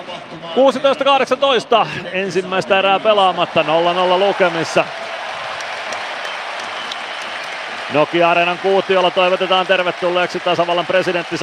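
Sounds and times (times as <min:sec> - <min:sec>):
speech: 0:00.3 - 0:05.0, 0:07.9 - 0:11.4
arena crowd applauding: 0:02.7 - 0:11.4.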